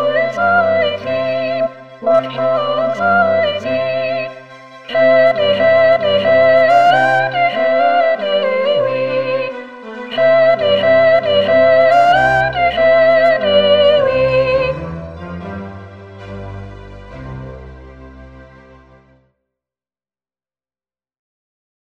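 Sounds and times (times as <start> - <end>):
soprano singing: 0.0 - 17.4.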